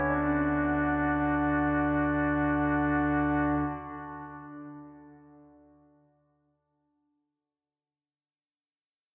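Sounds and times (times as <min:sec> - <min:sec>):
organ trio in D major: 0:00.0 - 0:05.8.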